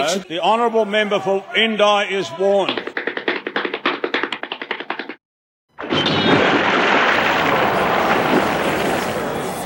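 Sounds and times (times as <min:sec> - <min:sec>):
speech: 0:00.1 - 0:02.8
rapid tapping: 0:02.7 - 0:05.2
person splashing into a paddle pool: 0:05.8 - 0:09.5.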